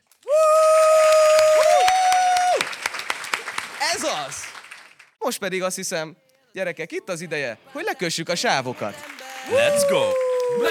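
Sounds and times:
applause: 0.0s - 5.2s, 8.7s - 10.6s
speech: 4.1s - 4.5s, 5.2s - 10.6s.

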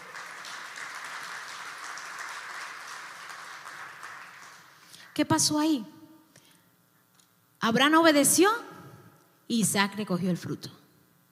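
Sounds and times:
audience applause: 0.0s - 4.9s
speech: 5.2s - 6.0s, 7.6s - 8.7s, 9.5s - 10.8s.

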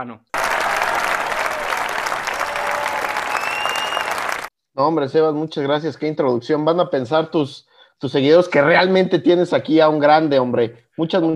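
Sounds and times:
speech: 0.0s - 0.8s, 4.8s - 11.3s
audience applause: 0.4s - 4.5s.

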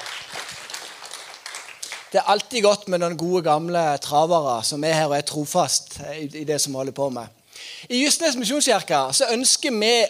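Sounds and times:
audience applause: 0.0s - 2.2s
speech: 2.1s - 10.0s.

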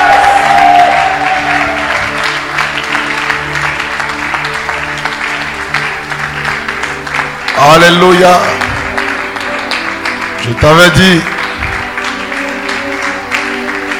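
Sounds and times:
church congregation clapping in praise: 0.0s - 13.9s
speech: 7.6s - 8.6s, 10.5s - 11.3s.

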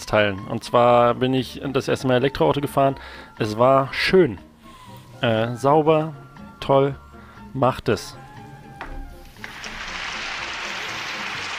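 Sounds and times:
speech: 0.1s - 4.5s, 5.2s - 7.0s, 7.6s - 8.2s
canned applause sound effect: 9.4s - 11.5s.

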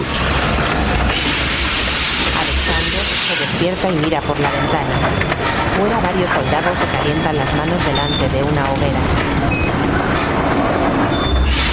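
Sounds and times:
train at Zima station mechanical rumble: 0.0s - 11.7s
train high squealing tones: 1.2s - 8.6s
speech: 3.6s - 11.6s.

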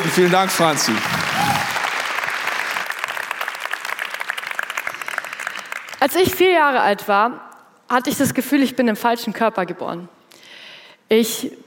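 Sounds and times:
audience clapping: 0.0s - 6.4s
speech: 0.1s - 1.6s, 6.0s - 10.2s, 11.1s - 11.6s.

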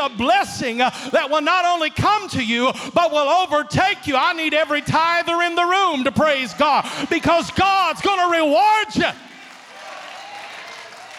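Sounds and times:
speech: 0.0s - 9.3s
crowd applauding: 4.3s - 11.1s.

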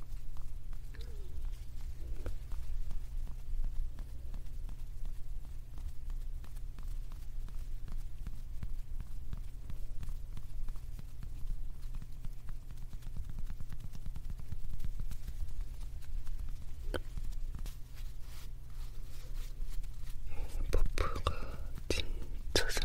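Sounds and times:
puffs and pouches being handled: 0.0s - 22.8s.

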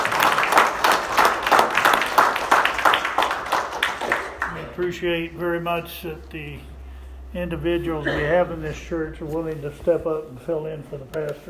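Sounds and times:
audience applause: 0.0s - 4.8s
speech: 4.8s - 6.7s, 7.3s - 11.4s.

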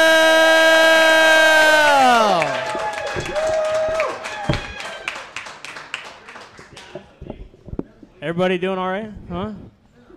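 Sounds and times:
person whooping: 0.0s - 5.1s
comedy club audience clapping and cheering: 0.0s - 7.2s
speech: 8.4s - 9.7s.

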